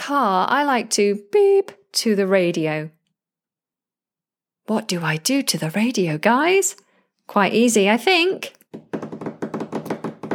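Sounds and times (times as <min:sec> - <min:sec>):
speech: 0:00.1 - 0:03.0, 0:04.7 - 0:08.9
hand drumming taps: 0:08.7 - 0:10.3.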